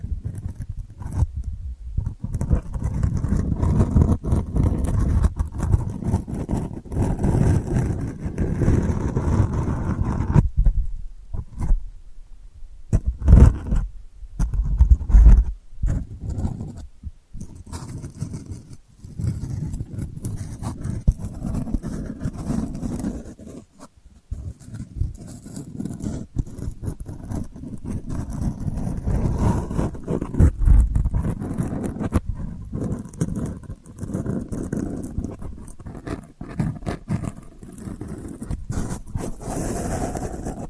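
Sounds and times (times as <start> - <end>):
ASMR delicate scratching: 0.0 - 11.9, 12.9 - 40.6.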